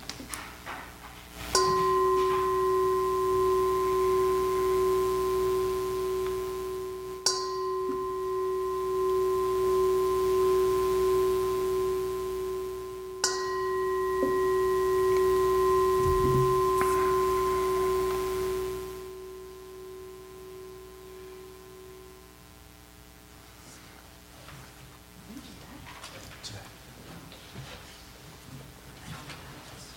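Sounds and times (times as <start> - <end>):
gong chimes: 1.5 - 22.3.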